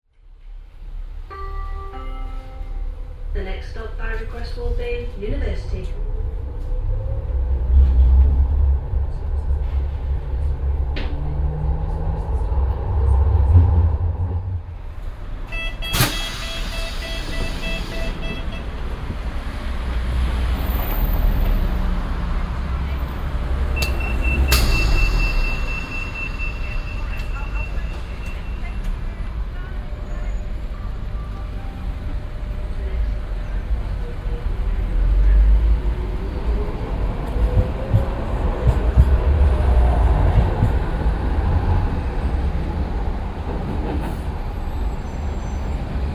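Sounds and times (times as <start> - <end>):
Sheffield tram: 0.1 - 46.1.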